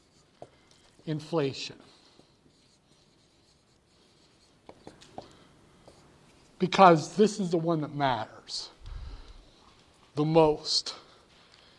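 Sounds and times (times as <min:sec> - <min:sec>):
writing on a board: 0:00.0 - 0:01.0, 0:01.9 - 0:06.6
low hiss: 0:00.0 - 0:11.7
speech: 0:01.0 - 0:01.9, 0:06.6 - 0:08.8, 0:10.2 - 0:11.0.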